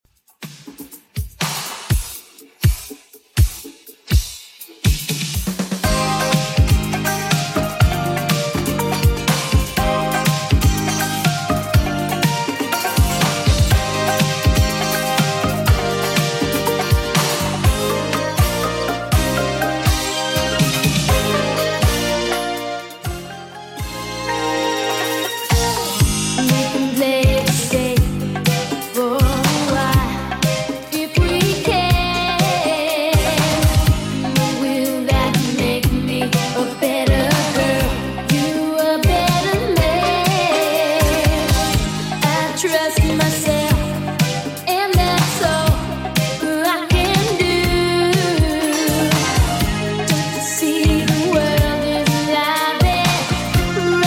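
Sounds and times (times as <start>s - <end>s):
80s drum machine beat: 0.1s - 54.0s.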